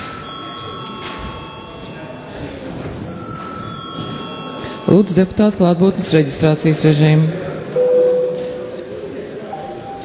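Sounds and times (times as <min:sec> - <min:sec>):
parliament chamber bell ringing: 0:00.0 - 0:02.4, 0:03.1 - 0:05.4
murmur of voices: 0:00.0 - 0:10.0
speech: 0:04.9 - 0:07.5.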